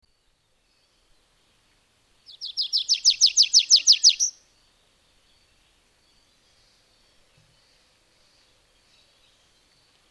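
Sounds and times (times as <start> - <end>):
bird trill: 2.3 - 4.4.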